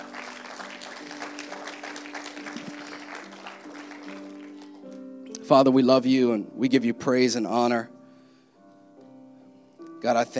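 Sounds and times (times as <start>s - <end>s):
audience hand clapping: 0.0s - 5.1s
speech: 5.5s - 8.0s, 10.0s - 10.3s.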